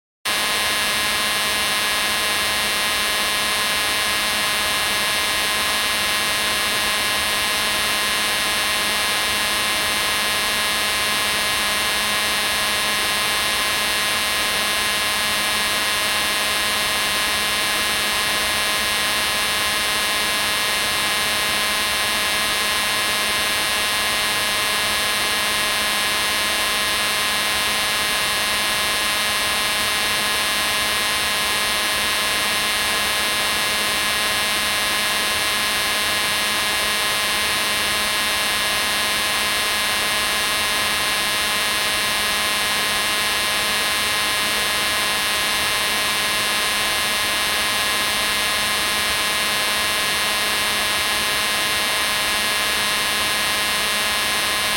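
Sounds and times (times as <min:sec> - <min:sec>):
Casio synthesizer buzzing noise: 0:00.3 - 0:54.7.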